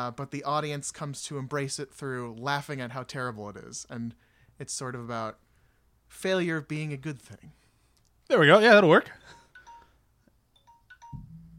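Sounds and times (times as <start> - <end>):
speech: 0.0 - 5.4, 6.1 - 7.6, 8.3 - 9.3
phone ringtone of short bright electronic beeps: 9.2 - 10.0, 10.6 - 11.5.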